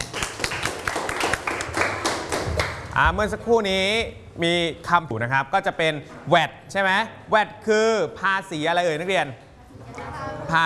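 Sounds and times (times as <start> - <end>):
applause for classmates: 0.0 - 2.9
speech: 3.0 - 9.4, 10.5 - 10.6.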